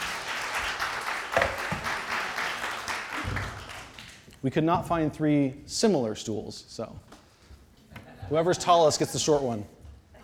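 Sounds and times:
audience applause: 0.0 - 4.2
speech: 4.4 - 7.1, 8.3 - 9.8.

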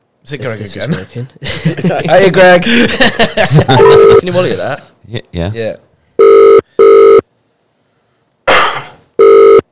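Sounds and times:
speech: 0.3 - 6.4
laughter: 0.8 - 4.6
telephone ringing with electronic tone bursts: 3.7 - 4.4, 6.2 - 7.2, 9.2 - 9.7
person coughing: 8.5 - 9.1.

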